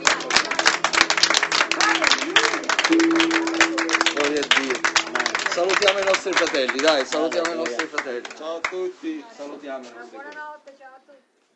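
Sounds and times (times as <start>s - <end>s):
audience applauding: 0.0s - 8.8s
speech: 5.8s - 10.5s.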